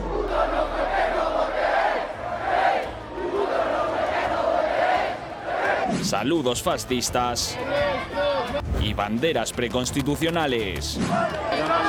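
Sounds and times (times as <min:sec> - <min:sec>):
crowd shouting insults: 0:00.0 - 0:06.1, 0:07.5 - 0:08.6, 0:11.0 - 0:11.8
speech: 0:06.1 - 0:11.8.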